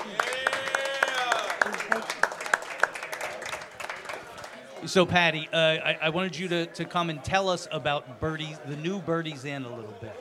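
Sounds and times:
small group clapping rhythmically: 0.0s - 4.9s
overlapping voices and chatter: 0.0s - 10.1s
speech: 4.8s - 10.1s.

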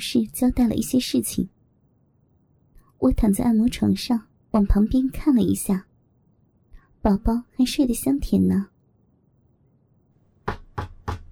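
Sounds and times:
speech: 0.0s - 1.6s, 3.0s - 5.9s, 7.0s - 8.7s
knocking on a massage room door: 10.4s - 11.2s.

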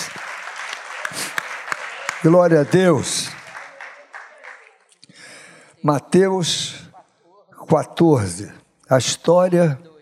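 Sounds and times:
crowd applauding: 0.0s - 5.6s
speech: 2.2s - 3.4s, 5.8s - 6.8s, 7.7s - 9.9s.

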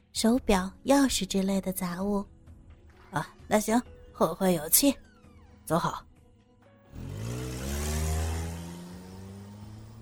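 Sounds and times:
speech: 0.2s - 2.4s, 3.1s - 5.1s, 5.7s - 6.1s
Cherokee jeep driving out of residential compound: 6.9s - 10.0s.

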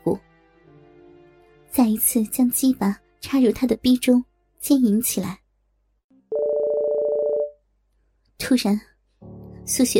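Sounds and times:
speech: 0.0s - 0.3s, 1.8s - 5.4s, 8.5s - 8.9s, 9.7s - 9.9s
mobile phone ringtone: 6.3s - 7.6s.

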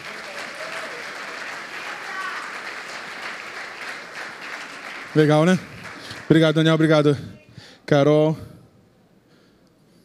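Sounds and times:
audience applause: 0.0s - 6.9s
speech: 5.2s - 5.7s, 6.3s - 8.5s.

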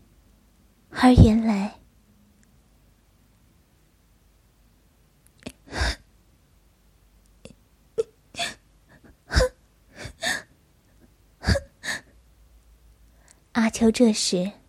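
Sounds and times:
speech: 1.0s - 1.8s, 13.8s - 14.6s
woman crying softly: 8.0s - 10.5s, 11.4s - 12.1s.

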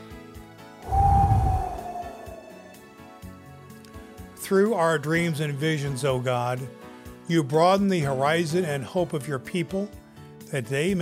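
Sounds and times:
deep breath taken before a prayer: 0.8s - 2.8s
speech: 4.5s - 11.0s.

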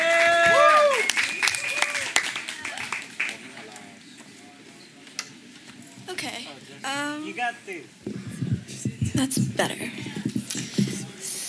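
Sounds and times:
high whoops: 0.0s - 3.0s
audience applause: 0.0s - 4.0s
speech: 7.5s - 8.2s, 9.2s - 10.2s.

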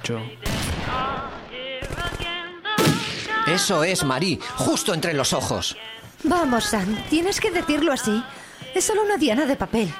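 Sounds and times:
speech: 0.0s - 2.1s, 3.5s - 9.9s
gunshots at the Fort Frolic shooting gallery: 0.4s - 3.8s.

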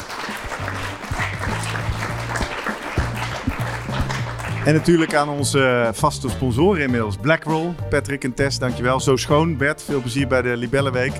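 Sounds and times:
live audience applause: 0.0s - 5.4s
speech: 4.7s - 11.1s.

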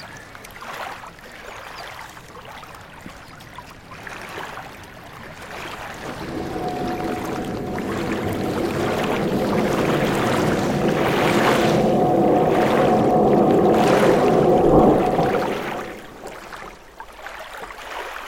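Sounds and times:
quieter lapping water: 4.0s - 16.6s
steady wash of water in a working harbour: 5.2s - 16.7s
boat engine running with steady tone: 5.4s - 16.4s.

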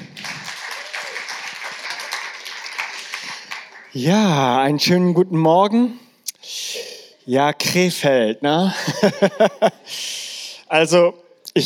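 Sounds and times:
audience applause: 0.0s - 4.0s
speech: 3.9s - 6.0s, 7.3s - 10.1s, 10.7s - 11.6s
laughter: 8.7s - 9.9s.

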